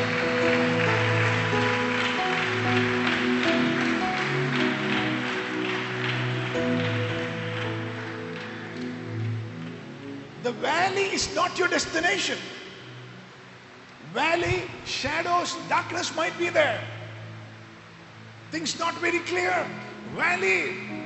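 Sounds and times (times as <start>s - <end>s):
audience clapping: 0.0s - 11.1s
speech: 10.6s - 12.6s, 15.2s - 17.0s, 18.5s - 20.9s.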